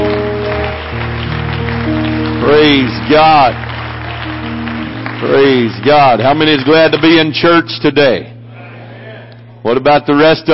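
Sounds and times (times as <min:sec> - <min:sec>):
audience clapping hands: 0:00.0 - 0:07.6
speech: 0:02.7 - 0:03.7, 0:05.2 - 0:08.3, 0:09.6 - 0:10.5.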